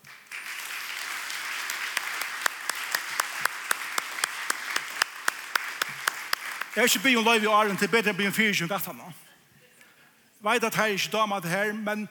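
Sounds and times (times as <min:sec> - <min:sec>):
audience applause for two performers at a gathering: 0:00.0 - 0:08.0
rhythmic unison clapping: 0:00.0 - 0:08.1
speech: 0:06.8 - 0:09.3, 0:10.4 - 0:12.0.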